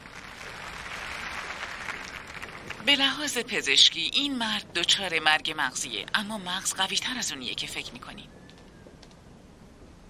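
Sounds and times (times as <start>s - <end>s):
audience applauding a keynote speaker at a neurology and psychiatry seminar: 0.0s - 2.9s
speech: 2.8s - 8.4s.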